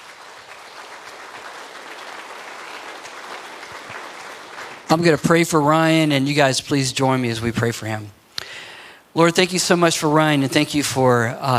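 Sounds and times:
church gathering audience applause welcoming someone: 0:00.0 - 0:05.2
speech: 0:04.9 - 0:08.2, 0:09.2 - 0:11.5.

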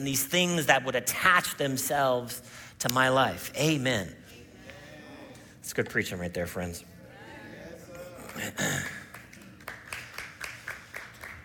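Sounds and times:
speech: 0:00.0 - 0:04.3, 0:05.6 - 0:06.9, 0:08.4 - 0:09.0
forced audience applause: 0:08.2 - 0:11.4.

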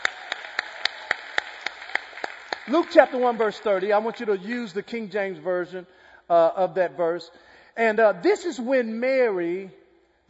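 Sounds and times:
audience clapping hands: 0:00.0 - 0:04.5
speech: 0:02.7 - 0:10.2.

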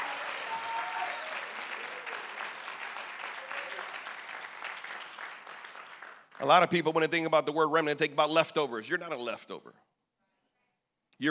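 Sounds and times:
audience cheering: 0:00.0 - 0:05.8
audience clapping: 0:00.0 - 0:07.0
speech: 0:06.4 - 0:09.9.

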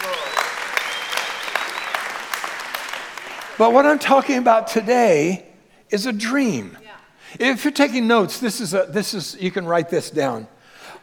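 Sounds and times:
whistles and cheers: 0:00.0 - 0:03.5
audience applause: 0:00.0 - 0:04.0
speech: 0:03.6 - 0:10.6.

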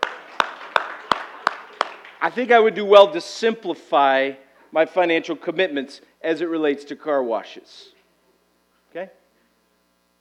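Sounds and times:
crisp hand claps: 0:00.0 - 0:02.3
faint hiss: 0:00.0 - 0:10.1
speech: 0:02.2 - 0:08.0, 0:08.9 - 0:09.2.

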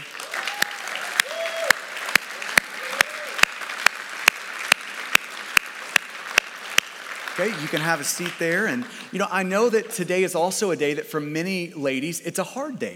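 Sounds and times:
sharp evenly spaced clap: 0:00.0 - 0:07.4
audience applause: 0:00.0 - 0:09.7
speech: 0:07.4 - 0:12.9.

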